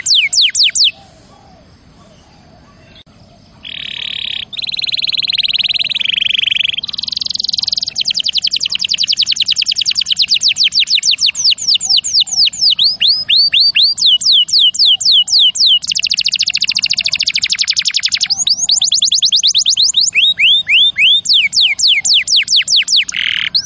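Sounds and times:
canary singing: 0.0 - 23.6.

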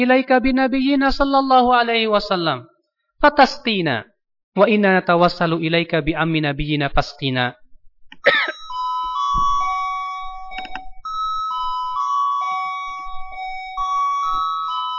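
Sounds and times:
speech: 0.0 - 7.6
bell accidentally pressed ringing: 8.3 - 14.9.

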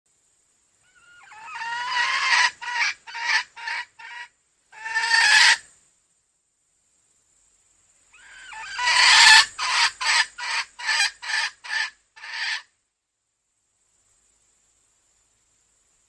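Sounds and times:
female junglefowl clucking: 0.9 - 5.7, 8.2 - 12.7.

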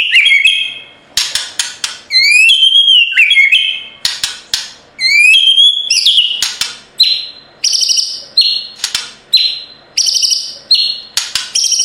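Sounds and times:
White-rumped shama song with clicking notes: 0.1 - 11.8.

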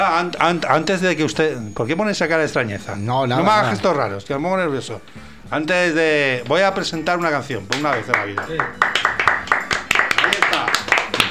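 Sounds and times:
speech: 0.1 - 8.9
radio applause sound effect: 7.6 - 11.2.

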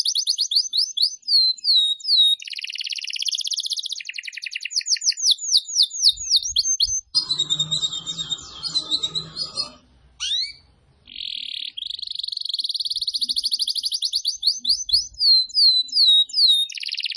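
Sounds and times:
Atlantic canary singing: 0.0 - 17.1
low rumbling background noise: 7.2 - 11.2.

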